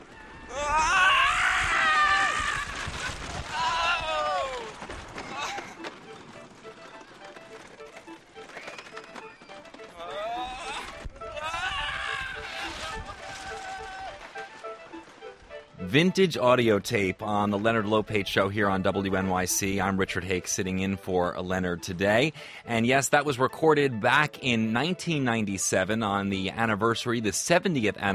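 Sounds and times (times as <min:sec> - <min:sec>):
roller coaster riders screaming on a big drop: 0:00.0 - 0:05.8, 0:08.5 - 0:14.5
roller coaster rattling and rumbling ride noise: 0:00.0 - 0:23.5
speech: 0:15.9 - 0:28.1.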